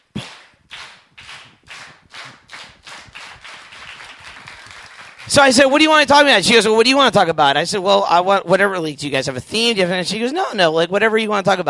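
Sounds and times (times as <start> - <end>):
audience rhythmic clapping: 0.0 - 6.1
speech: 5.3 - 11.6.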